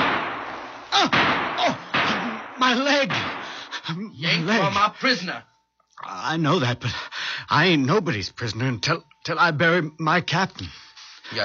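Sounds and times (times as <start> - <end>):
gunfire from Union burial detail soldiers in a radio drama: 0.0 - 3.8
speech: 1.0 - 1.8, 2.7 - 3.2, 3.9 - 11.4.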